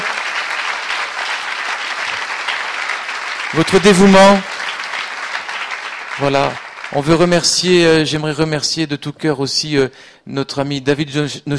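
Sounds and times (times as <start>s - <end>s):
audience applauding: 0.0s - 8.0s
speech: 3.5s - 4.5s, 6.2s - 11.5s.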